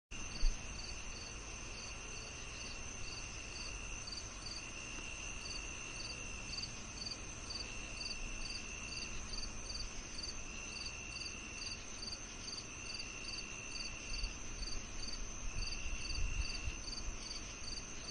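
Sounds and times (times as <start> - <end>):
cricket chirping: 0.2 - 18.0.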